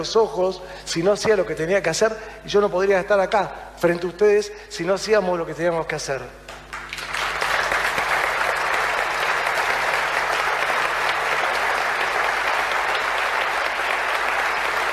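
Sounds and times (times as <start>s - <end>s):
speech: 0.0s - 6.5s
applause: 6.5s - 14.9s.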